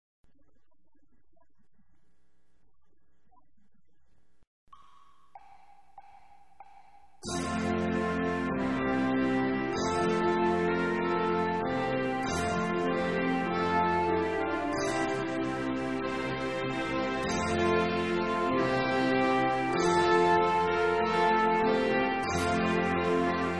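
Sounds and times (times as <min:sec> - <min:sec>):
trumpet piece: 0:07.3 - 0:23.5.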